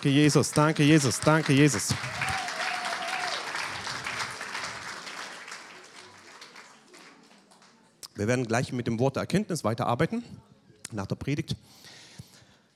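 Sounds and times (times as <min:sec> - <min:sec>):
speech: 0:00.0 - 0:02.4, 0:08.2 - 0:11.9
audience applause: 0:00.0 - 0:07.9.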